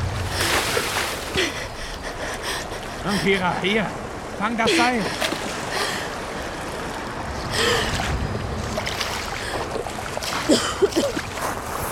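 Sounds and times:
salt water splashing as a woman pulls her head out: 0:00.0 - 0:01.9, 0:04.2 - 0:11.9
waves washing: 0:00.0 - 0:11.9
wind: 0:00.0 - 0:11.9
speech: 0:03.0 - 0:05.2.

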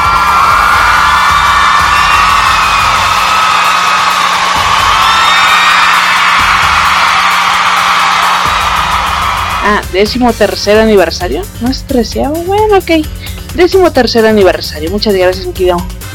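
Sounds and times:
large crowd cheering and whooping in an ovation: 0:00.0 - 0:09.8
speech: 0:09.7 - 0:16.0.

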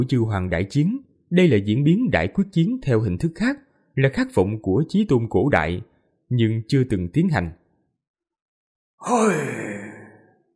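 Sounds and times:
speech: 0:00.0 - 0:07.6, 0:09.0 - 0:09.8
old man's weary sigh: 0:09.0 - 0:10.2.

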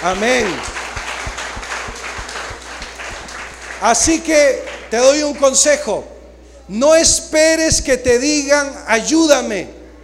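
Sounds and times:
speech: 0:00.0 - 0:00.7, 0:03.8 - 0:06.1, 0:06.7 - 0:09.8
church congregation applauding: 0:00.0 - 0:05.8.

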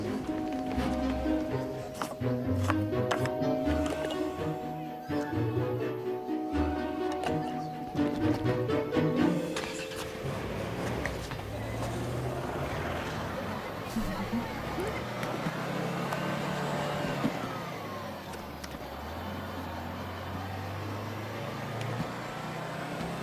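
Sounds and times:
bus pulling away: 0:00.0 - 0:23.2.

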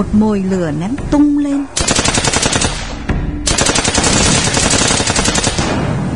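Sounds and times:
speech: 0:00.0 - 0:01.8
rapid gunfire in a Vietnamese radio drama surprise attack on a village: 0:01.8 - 0:06.1.

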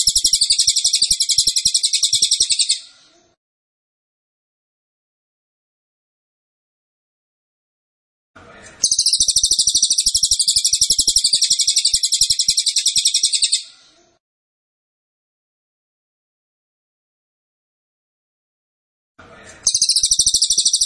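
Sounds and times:
cililin singing a metallic trill: 0:00.0 - 0:02.9, 0:08.8 - 0:13.7, 0:19.7 - 0:20.8.

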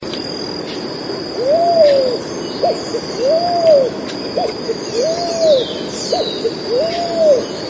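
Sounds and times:
pigeon cooing: 0:01.4 - 0:07.5.

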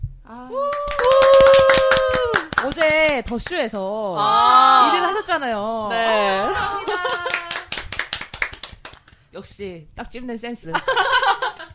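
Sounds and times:
speech: 0:00.3 - 0:01.0, 0:02.6 - 0:07.4, 0:09.4 - 0:11.2
hands clapping: 0:00.7 - 0:03.6, 0:06.6 - 0:09.3
laughter: 0:06.1 - 0:07.7, 0:10.8 - 0:11.7.

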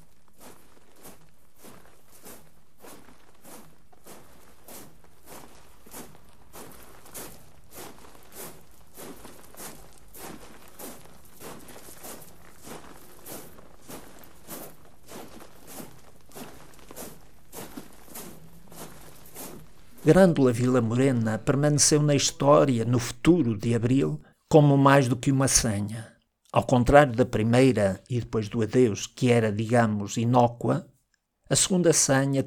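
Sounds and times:
feet shuffling on gravel: 0:00.0 - 0:24.1
speech: 0:20.1 - 0:30.9, 0:31.5 - 0:32.4.

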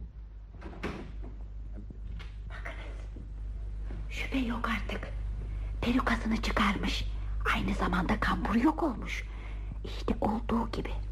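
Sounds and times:
steady low hum: 0:00.0 - 0:11.0
door easing shut slowly: 0:00.5 - 0:01.4
speech: 0:04.2 - 0:05.2, 0:05.8 - 0:11.0.

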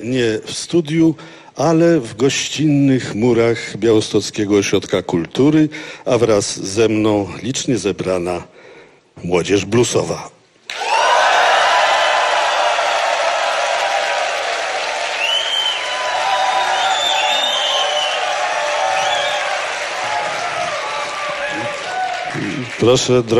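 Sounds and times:
speech: 0:00.0 - 0:10.9, 0:22.8 - 0:23.3
audience screaming and cheering: 0:10.7 - 0:22.8.

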